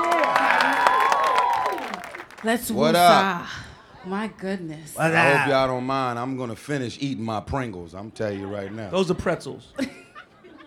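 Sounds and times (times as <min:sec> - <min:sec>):
audience clapping: 0:00.0 - 0:03.2
speech: 0:02.4 - 0:10.0
laughter: 0:09.7 - 0:10.6.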